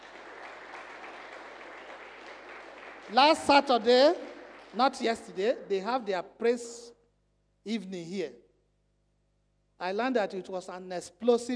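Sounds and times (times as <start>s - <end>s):
audience applauding: 0.0s - 5.6s
speech: 3.1s - 7.0s, 7.6s - 8.4s, 9.8s - 11.5s.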